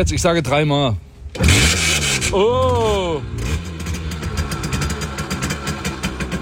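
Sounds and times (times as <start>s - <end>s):
speech: 0.0s - 3.6s
Simson S51 moped engine kick-started and rattling: 1.3s - 6.3s.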